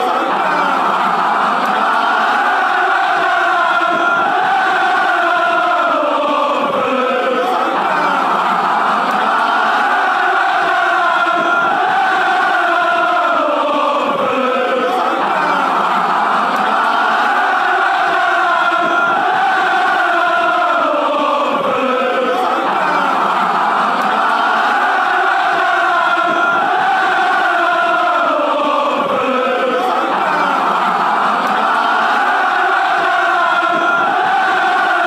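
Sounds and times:
football crowd chanting: 0.0 - 35.0
laughter: 0.0 - 35.0.

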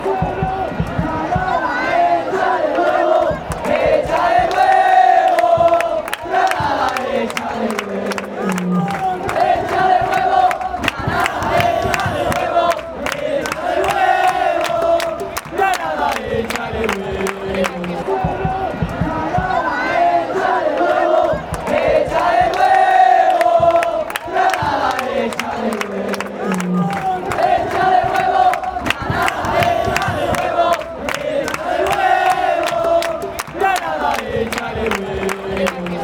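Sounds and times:
football fans chanting: 0.0 - 36.0.

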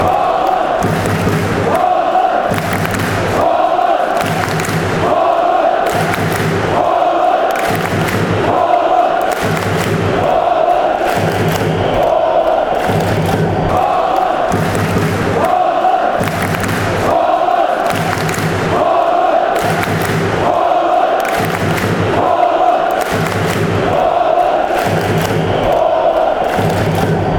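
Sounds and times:
hands clapping: 0.0 - 27.3.

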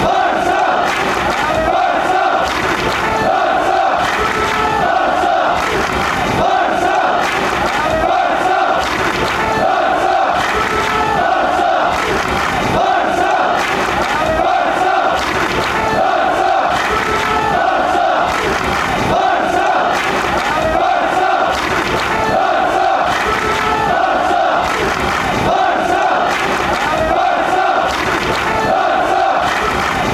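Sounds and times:
football crowd clapping: 0.0 - 30.1.

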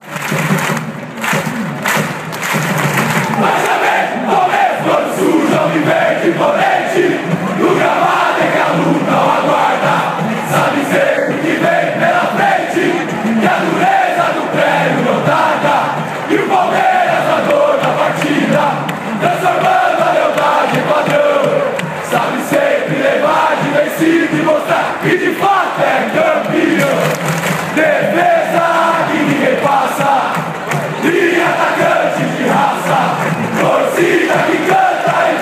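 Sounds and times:
fans chanting: 1.2 - 35.4.

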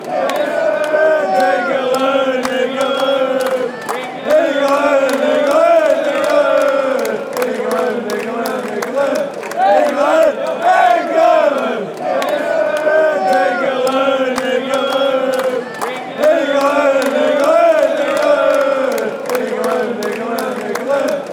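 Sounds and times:
football fans chanting: 0.0 - 21.3.

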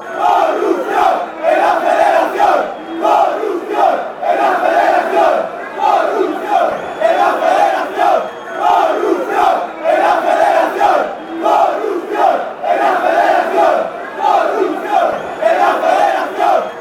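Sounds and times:
chanting: 0.0 - 16.7.

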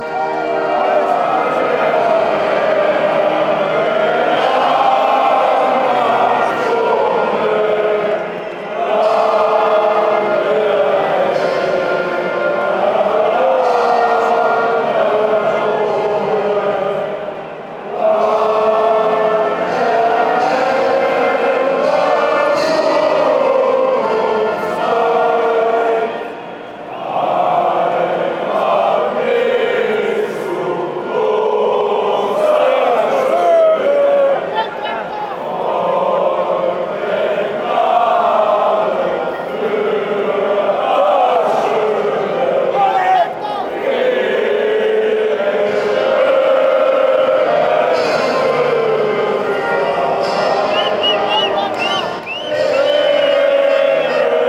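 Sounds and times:
chanting: 0.0 - 54.4
national anthem: 0.0 - 54.4.

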